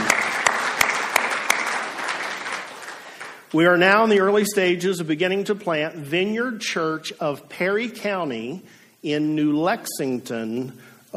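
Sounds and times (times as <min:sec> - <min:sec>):
audience clapping: 0:00.0 - 0:03.6
speech: 0:03.5 - 0:11.1.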